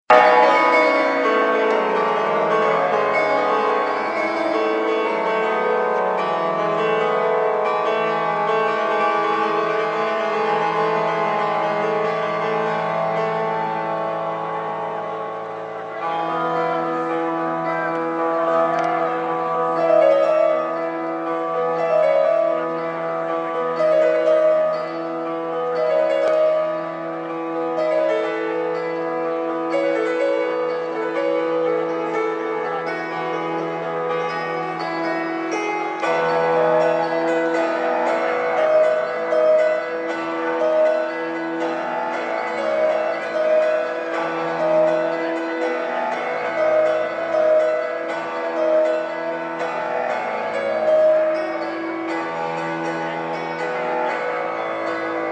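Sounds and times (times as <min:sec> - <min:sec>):
live solo piano: 0:00.1 - 0:55.2.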